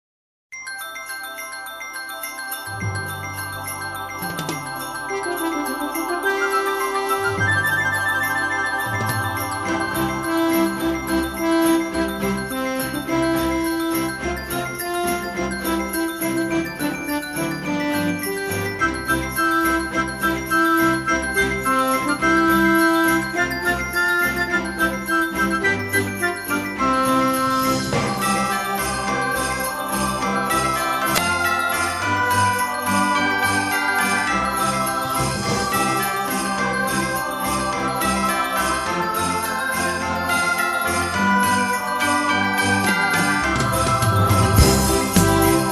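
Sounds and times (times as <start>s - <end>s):
Christmas song: 0.5s - 45.7s.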